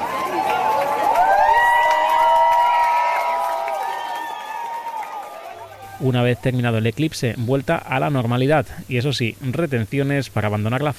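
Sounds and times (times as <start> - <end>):
crowd applauding after total solar eclipse: 0.0 - 6.1
speech: 6.0 - 10.9.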